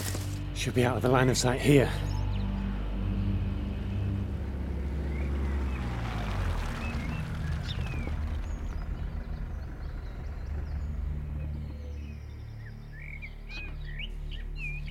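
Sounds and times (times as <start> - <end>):
military transport vehicle engine rumbling while passing: 0.0 - 14.0
speech: 0.6 - 2.1
rattles and whines: 2.4 - 13.9.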